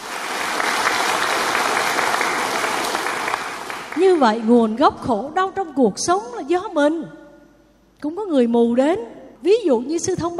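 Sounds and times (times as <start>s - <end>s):
audience applause: 0.0s - 4.2s
speech: 4.0s - 7.2s, 8.0s - 10.3s.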